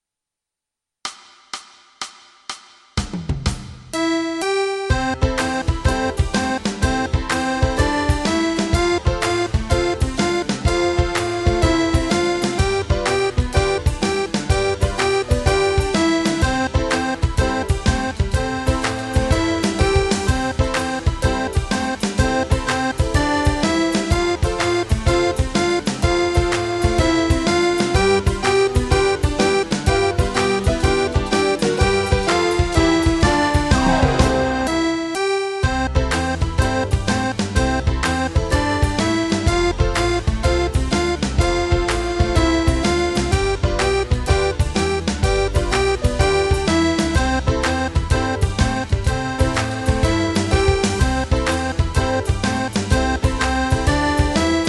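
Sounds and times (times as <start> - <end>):
accordion: 4.0 - 54.6.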